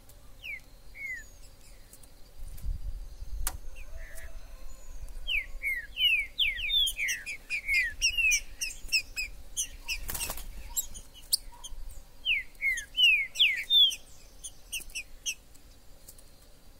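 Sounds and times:
steady background hum: 0.0s - 16.7s
Green-winged saltator whistling: 0.4s - 1.3s, 5.3s - 11.7s, 12.3s - 15.4s.

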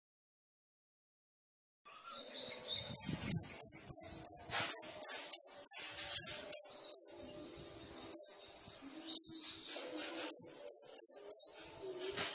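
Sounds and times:
faint lower chatter: 1.9s - 12.3s
Sunbird song: 3.0s - 7.2s, 8.1s - 8.4s, 9.0s - 12.3s.

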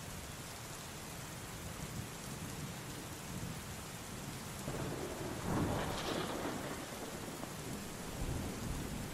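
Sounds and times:
steady hissing rain: 0.0s - 9.1s
deep rolling rumble of thunder: 4.7s - 9.1s.

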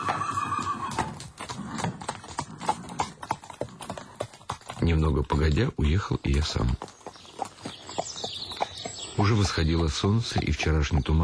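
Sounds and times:
horse whinnying: 0.0s - 4.2s
horse hooves clopping: 0.0s - 11.2s
speech: 4.8s - 7.0s, 9.2s - 11.2s.

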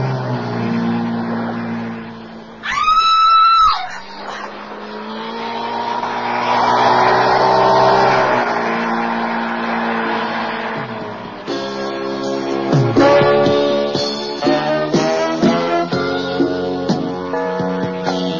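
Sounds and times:
motorboat engine speeding off: 0.0s - 18.3s
high wavering wail: 2.6s - 5.4s.

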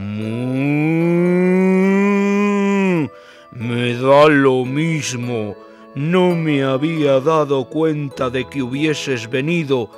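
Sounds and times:
bull mooing: 0.0s - 3.1s
speech: 4.0s - 9.9s.

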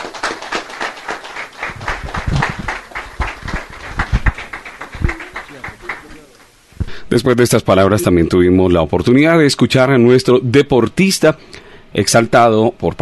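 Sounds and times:
audience applause: 0.0s - 6.5s
speech: 7.1s - 12.9s.

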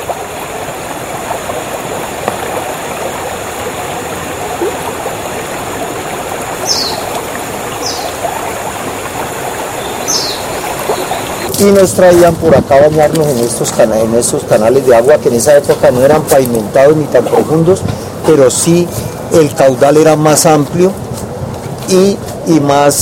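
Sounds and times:
Fucha river flowing in a steady rush: 0.0s - 22.8s
brief high chirps: 6.6s - 7.2s, 9.8s - 11.5s
speech: 11.6s - 21.2s, 21.9s - 23.0s.

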